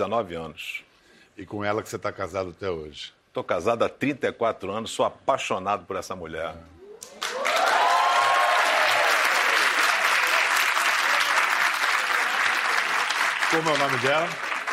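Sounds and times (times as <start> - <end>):
speech: 0.0 - 6.7, 13.5 - 14.5
faint cheers: 6.8 - 10.4
audience applause: 7.1 - 14.7.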